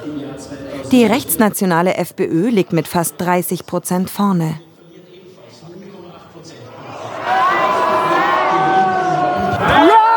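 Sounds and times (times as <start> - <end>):
speech: 0.4 - 4.7
supporters cheering: 6.7 - 10.1.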